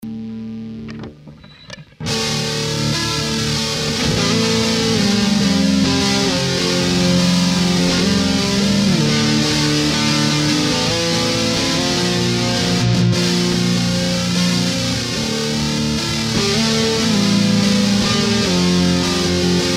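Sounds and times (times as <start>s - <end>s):
D bass: 0.0s - 19.7s.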